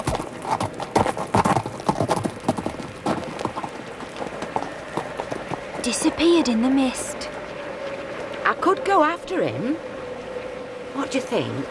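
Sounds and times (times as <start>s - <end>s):
horse hooves clip-clopping: 0.0s - 8.4s
speech: 5.8s - 7.3s, 8.5s - 9.9s, 11.0s - 11.6s.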